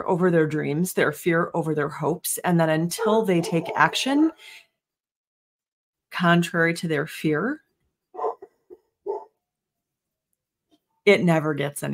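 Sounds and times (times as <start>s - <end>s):
speech: 0.0s - 4.6s, 6.1s - 7.6s, 11.1s - 11.9s
dogs barking: 8.2s - 9.3s.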